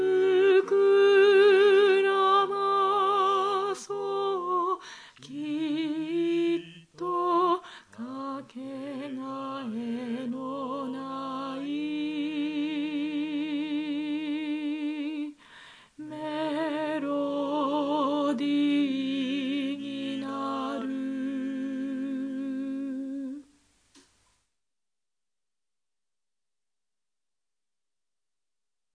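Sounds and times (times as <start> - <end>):
choir alto part: 0.0 - 15.3, 16.0 - 23.4.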